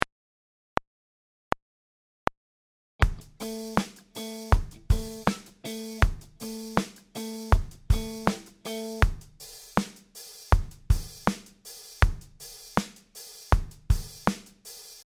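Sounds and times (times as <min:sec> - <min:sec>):
groove music: 0:03.0 - 0:14.6.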